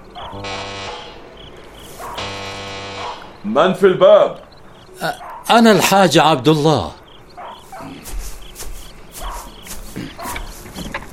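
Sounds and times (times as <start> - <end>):
speech: 0.2 - 0.9, 3.4 - 4.4, 5.0 - 7.0
doorbell buzzer ringing: 0.3 - 1.2, 2.2 - 3.3.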